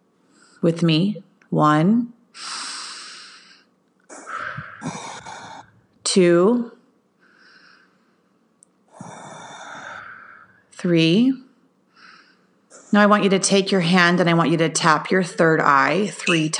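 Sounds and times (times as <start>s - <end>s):
speech: 0.6s - 2.5s, 6.1s - 6.8s, 10.8s - 11.4s, 12.9s - 16.5s
deep breaths during a guided breathing exercise: 2.4s - 6.0s, 7.2s - 10.7s, 11.9s - 12.9s.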